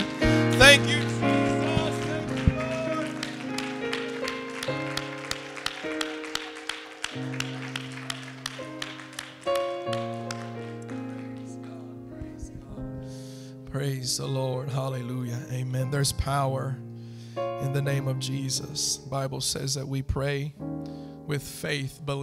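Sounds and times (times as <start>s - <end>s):
audience clapping hands: 0.0s - 12.7s
speech: 14.2s - 16.9s, 17.7s - 20.7s, 21.3s - 22.2s.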